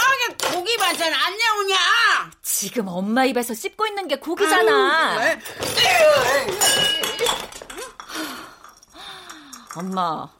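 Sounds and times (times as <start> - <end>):
speech: 0.9 - 2.0, 2.6 - 7.5, 9.8 - 10.3
rice bowl thrown and clattering: 5.4 - 10.2.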